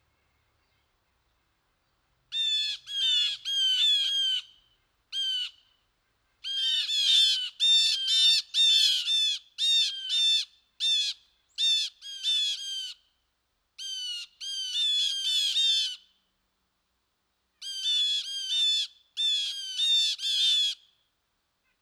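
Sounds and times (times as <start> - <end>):
blue jay calling: 2.3 - 5.8, 6.4 - 13.0, 13.8 - 16.1, 17.6 - 20.8.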